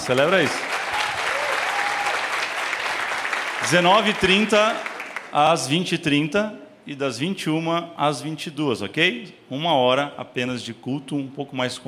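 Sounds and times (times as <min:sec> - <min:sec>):
speech: 0:00.0 - 0:00.7, 0:03.6 - 0:11.8
audience applauding: 0:00.0 - 0:05.4.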